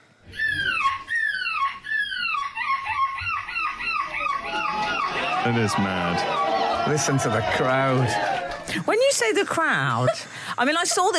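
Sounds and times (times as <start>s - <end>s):
boy imitating a seagull call: 0.2s - 5.3s
laughter: 0.4s - 11.1s
speech: 5.4s - 11.1s.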